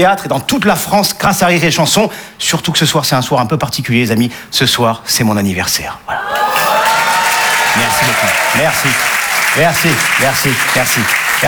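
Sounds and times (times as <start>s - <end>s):
speech: 0.0s - 6.4s, 7.7s - 11.4s
audience applause: 6.1s - 11.4s.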